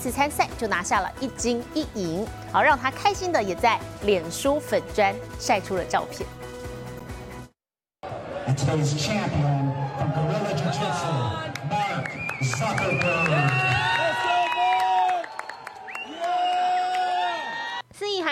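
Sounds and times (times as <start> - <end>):
speech: 0.0 - 6.5, 8.5 - 13.8
crowd cheering: 8.0 - 17.8
clapping: 11.5 - 17.6.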